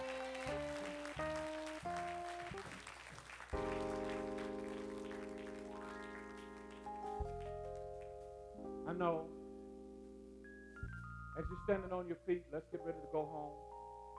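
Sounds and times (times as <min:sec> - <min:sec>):
audience clapping hands: 0:00.0 - 0:08.2
speech: 0:09.0 - 0:09.4, 0:11.4 - 0:13.7.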